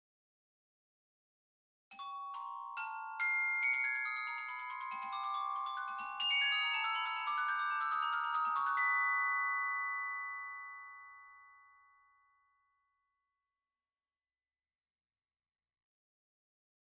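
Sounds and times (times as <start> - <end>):
glockenspiel: 1.9 - 13.2.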